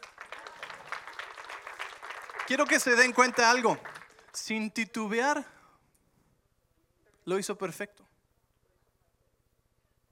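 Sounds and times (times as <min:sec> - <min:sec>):
audience applause: 0:00.0 - 0:04.7
speech: 0:02.5 - 0:05.6, 0:07.2 - 0:08.0.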